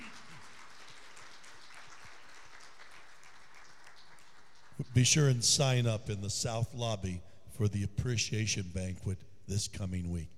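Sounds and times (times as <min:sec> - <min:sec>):
crowd applause: 0:00.0 - 0:05.4
speech: 0:04.8 - 0:10.3.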